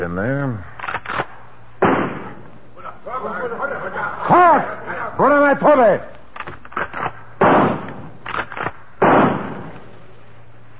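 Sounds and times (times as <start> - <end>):
speech: 0.0 - 0.7, 3.2 - 6.1
rifle shots fired into the jungle: 0.8 - 2.5, 6.7 - 9.9
laughter: 3.1 - 5.2.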